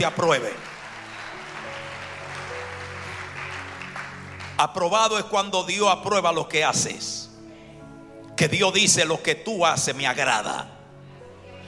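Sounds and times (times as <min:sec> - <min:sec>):
speech: 0:00.0 - 0:00.8, 0:04.6 - 0:07.2, 0:08.4 - 0:10.8
audience applause: 0:00.0 - 0:04.6.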